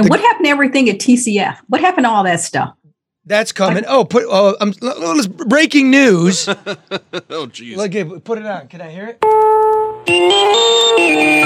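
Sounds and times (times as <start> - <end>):
speech: 0.0 - 11.4
laughter: 3.3 - 8.3
phone ringtone for incoming call: 9.2 - 11.4.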